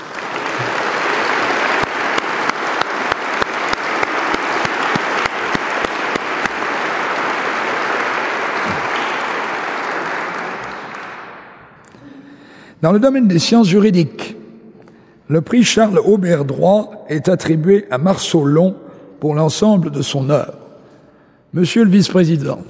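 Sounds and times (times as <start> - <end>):
audience applauding prize laureates: 0.0 - 12.1
speech: 12.8 - 14.3, 15.3 - 20.6, 21.5 - 22.6.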